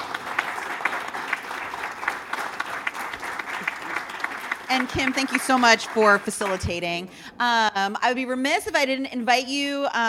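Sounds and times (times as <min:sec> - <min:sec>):
audience applause: 0:00.0 - 0:07.0
speech: 0:04.7 - 0:10.0.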